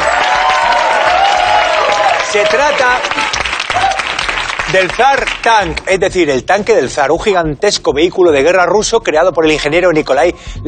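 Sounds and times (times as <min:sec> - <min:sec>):
crowd applauding: 0:00.0 - 0:05.9
speech: 0:02.3 - 0:03.8, 0:04.7 - 0:10.6.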